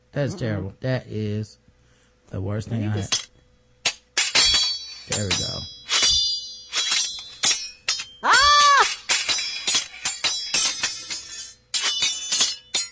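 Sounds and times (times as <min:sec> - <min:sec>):
speech: 0:00.1 - 0:01.6, 0:02.3 - 0:03.2, 0:05.1 - 0:05.8
silverware being dropped and clattering: 0:03.0 - 0:03.3, 0:03.9 - 0:12.9.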